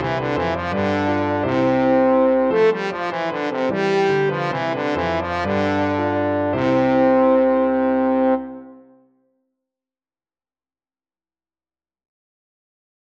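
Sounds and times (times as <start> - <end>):
trombone playing a minuet: 0.0 - 9.0.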